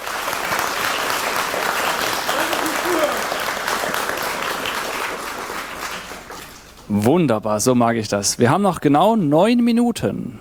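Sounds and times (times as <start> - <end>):
applause: 0.0 - 6.9
speech: 6.9 - 10.3.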